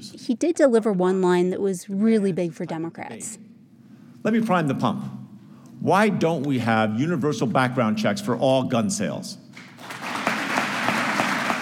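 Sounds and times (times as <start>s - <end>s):
speech: 0.3s - 3.5s, 4.2s - 5.2s, 5.8s - 10.1s
audience applause and standing ovation: 9.8s - 11.5s.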